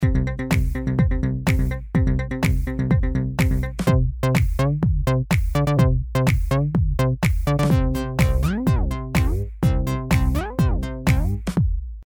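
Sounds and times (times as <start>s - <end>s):
bass sound: 0.0s - 12.0s.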